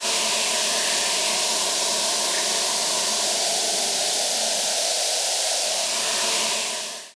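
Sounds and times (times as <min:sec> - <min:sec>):
analog steam engine: 0:00.0 - 0:07.1.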